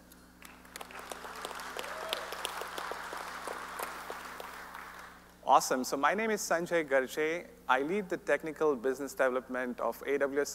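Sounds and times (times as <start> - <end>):
audience applause: 0.4 - 5.2
speech: 5.5 - 10.5.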